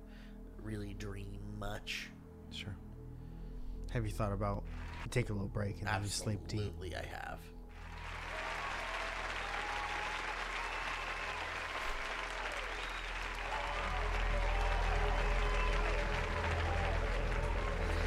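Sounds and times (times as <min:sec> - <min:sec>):
speech: 0:00.7 - 0:02.9, 0:03.9 - 0:07.6
audience applause: 0:04.7 - 0:05.2, 0:07.7 - 0:18.0
crowd murmur: 0:10.6 - 0:18.0.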